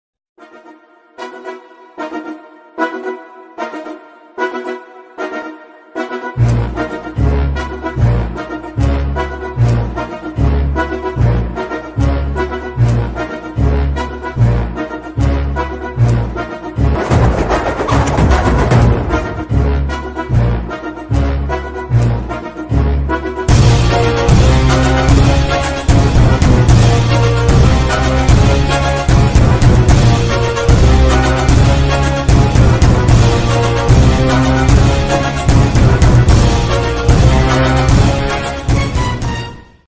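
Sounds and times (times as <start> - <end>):
intro background music: 0.4 - 39.8.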